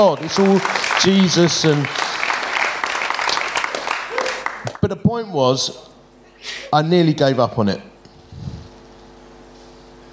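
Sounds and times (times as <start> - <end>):
speech: 0.0 - 2.0, 4.9 - 8.5
audience clapping: 0.0 - 5.0.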